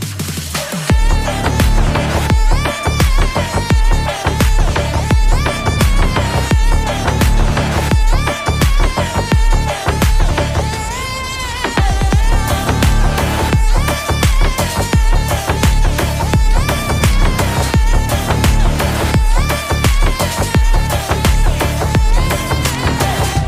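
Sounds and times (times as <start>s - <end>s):
ringtone music: 0.2s - 23.4s.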